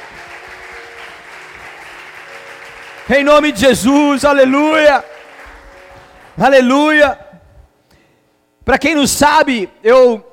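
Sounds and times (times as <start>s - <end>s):
audience applauding: 0.0s - 6.8s
speech: 3.1s - 5.1s, 6.4s - 7.2s, 8.7s - 10.3s.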